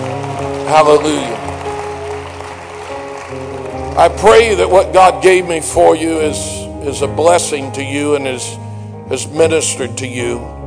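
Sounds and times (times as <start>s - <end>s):
audience clapping: 0.0s - 5.8s
speech: 0.7s - 1.4s, 4.0s - 10.6s.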